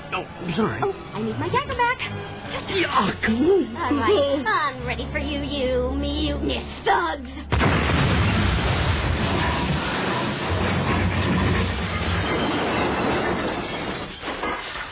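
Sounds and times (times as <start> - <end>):
speech: 0.2 - 7.7
fire rock thrown from the other side of the mountain striking: 7.5 - 13.6.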